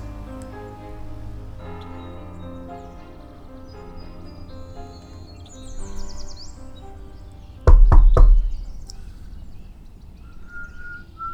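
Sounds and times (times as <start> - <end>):
faint birds chirping: 0.0 - 11.3
ice cream salesman knocking on a front door: 7.7 - 8.9.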